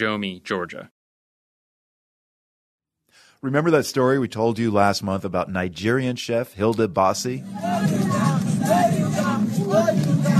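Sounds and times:
speech: 0.0 - 1.0, 3.4 - 8.4
crowd of fans cheering and chanting: 7.4 - 10.3
high shouts: 7.4 - 10.3.

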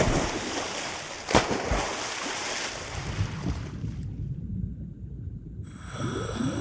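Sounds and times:
diver splashing into water: 0.0 - 3.9
faint underwater bubbling: 4.4 - 6.5.

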